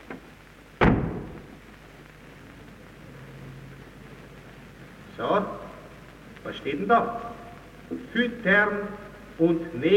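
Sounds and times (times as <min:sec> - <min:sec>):
door slamming shut: 0:00.8 - 0:01.4
speech: 0:05.2 - 0:05.6, 0:06.5 - 0:07.3, 0:08.1 - 0:09.9.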